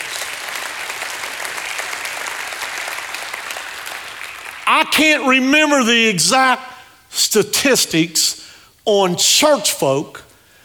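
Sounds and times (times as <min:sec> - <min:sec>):
audience hand clapping in praise: 0:00.0 - 0:05.0
speech: 0:04.7 - 0:10.2.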